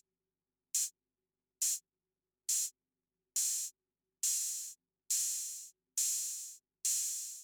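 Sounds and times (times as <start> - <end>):
open hi-hat: 0.8 - 1.0, 1.6 - 1.8, 2.5 - 2.8, 3.4 - 7.4.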